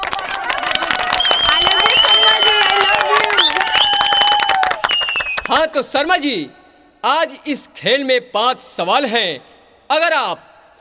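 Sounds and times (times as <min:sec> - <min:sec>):
crowd clapping welcoming a guest: 0:00.0 - 0:05.7
excited voices and whoops: 0:00.1 - 0:05.2
speech: 0:05.6 - 0:10.5.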